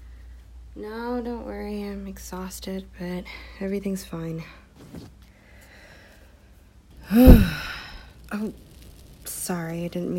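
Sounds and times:
speech: 0.8 - 5.2, 7.1 - 7.7, 8.4 - 8.7, 9.5 - 10.1
person imitating a fire breath with a breathy huff: 7.0 - 8.0.

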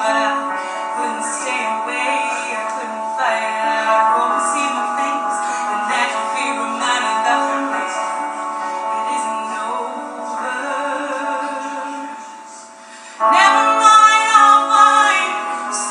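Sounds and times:
piano: 0.0 - 15.8
woman belting a cover song at an open mic: 0.0 - 15.8.

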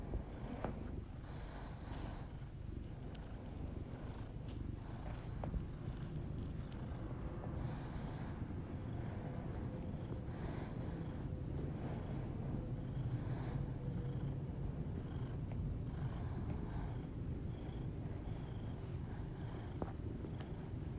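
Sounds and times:
domestic cat purring: 0.0 - 20.9.

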